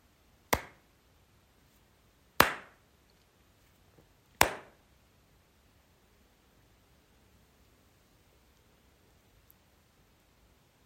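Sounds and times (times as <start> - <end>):
hand clapping: 4.4 - 4.7.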